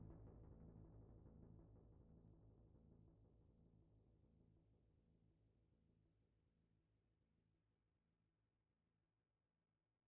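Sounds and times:
bass: 0.0 - 4.5.

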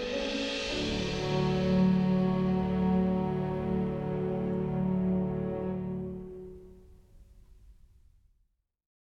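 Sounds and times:
world music: 0.0 - 6.9.

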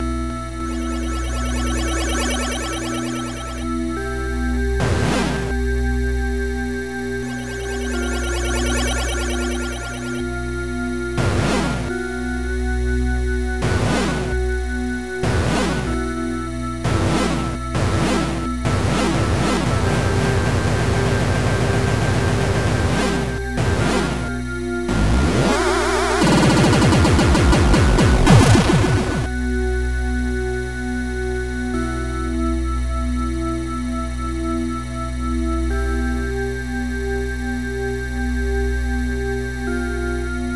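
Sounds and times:
music: 0.0 - 40.5
sound effects: 0.6 - 3.9, 7.2 - 10.3, 13.6 - 14.4, 15.2 - 16.1, 16.8 - 29.3.

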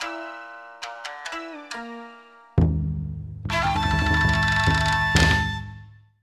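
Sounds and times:
victorious battle music: 3.5 - 5.8.

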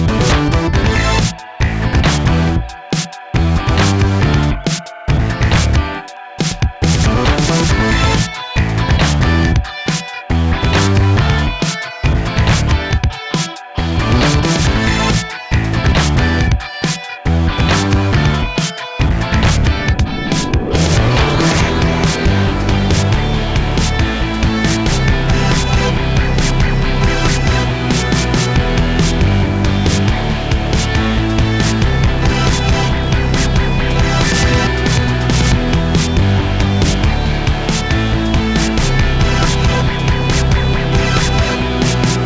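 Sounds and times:
race: 0.2 - 42.2.

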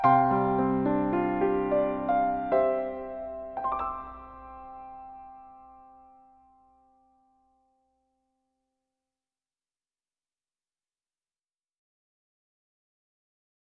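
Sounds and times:
piano arrangement: 0.0 - 7.6.

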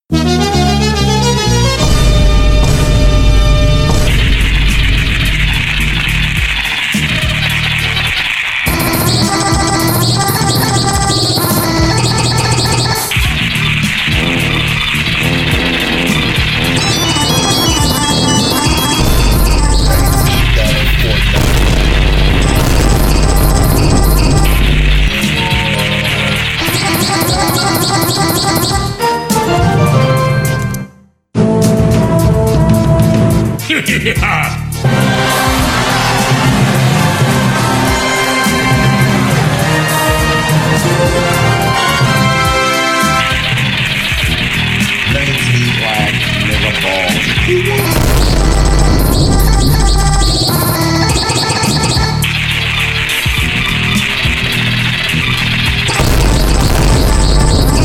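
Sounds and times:
instrumental music: 0.1 - 57.8.

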